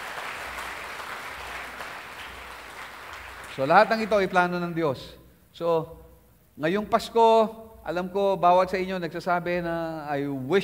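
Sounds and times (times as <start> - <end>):
congregation clapping during a Christmas church service: 0.0 - 4.7
speech: 3.6 - 6.0, 6.6 - 10.6.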